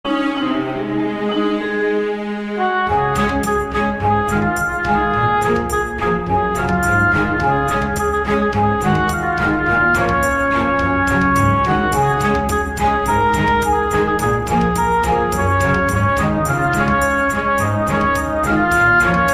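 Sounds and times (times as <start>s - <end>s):
orchestral remix: 0.0s - 19.3s.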